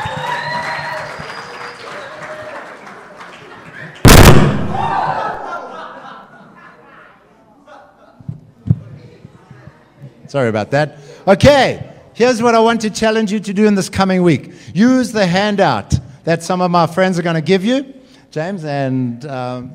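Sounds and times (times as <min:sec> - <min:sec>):
audience applause: 0:00.0 - 0:04.1
loud sharp thump: 0:04.1 - 0:04.9
laughter: 0:04.9 - 0:08.4
speech: 0:10.3 - 0:19.7.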